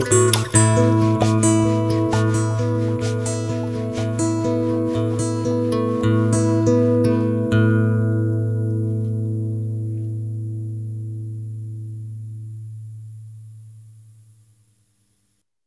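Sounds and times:
guitar instrumental: 0.0 - 12.2.

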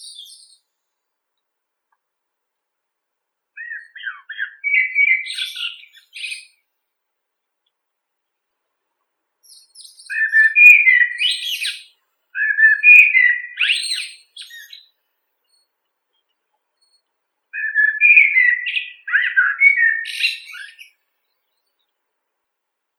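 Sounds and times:
blackbird Turdus merula: 0.0 - 0.8, 3.6 - 6.6, 9.4 - 22.0.

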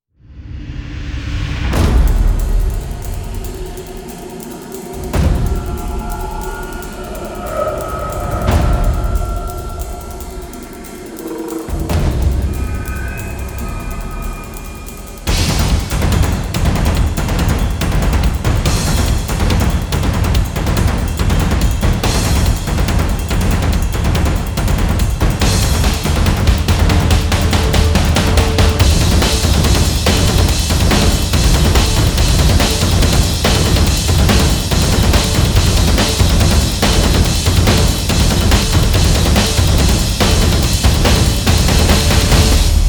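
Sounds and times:
drums: 0.3 - 42.8.

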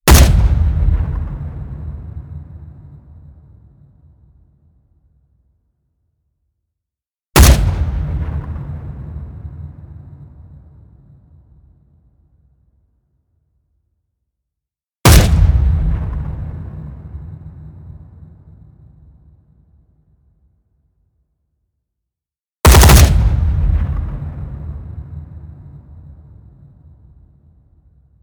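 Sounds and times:
gunshot hit: 0.0 - 4.7, 7.4 - 12.5, 15.0 - 20.2, 22.6 - 28.2.

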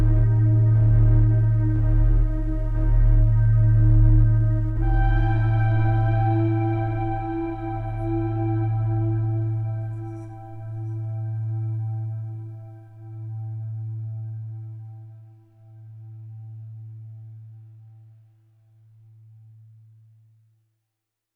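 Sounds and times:
synths: 0.0 - 15.0.

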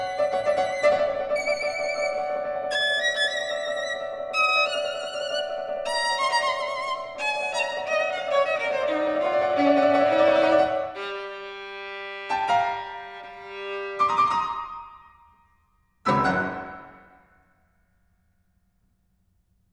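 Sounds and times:
violin and piano suite introduction andante maestoso: 0.0 - 15.1.

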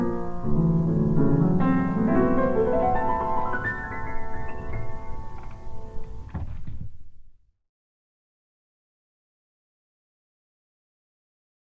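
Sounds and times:
piano interlude: 0.0 - 6.6.

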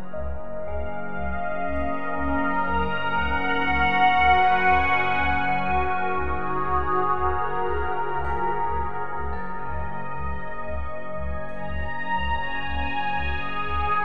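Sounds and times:
meditation music for sleep: 0.0 - 14.0.

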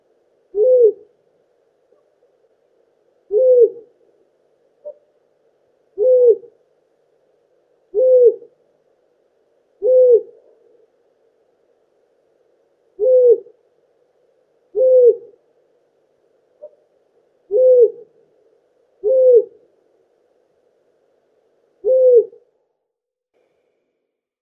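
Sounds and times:
long-eared owl Asio otus alarm call: 0.5 - 1.0, 3.3 - 3.9, 6.0 - 6.5, 7.9 - 8.5, 9.8 - 10.4, 13.0 - 13.5, 14.7 - 15.3, 17.5 - 18.1, 19.0 - 19.6, 21.8 - 22.4.

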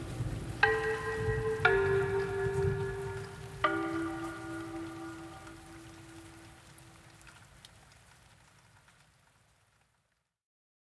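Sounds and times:
thunderstorm: 0.0 - 6.6
Asian bells ringing: 0.6 - 6.8.

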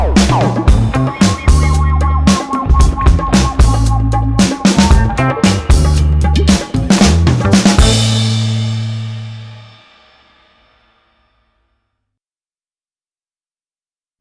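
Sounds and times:
funk music: 0.0 - 9.7.

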